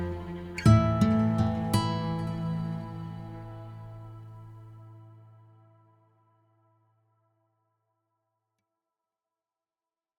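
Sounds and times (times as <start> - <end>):
guitar arpeggio: 0.0 - 4.6.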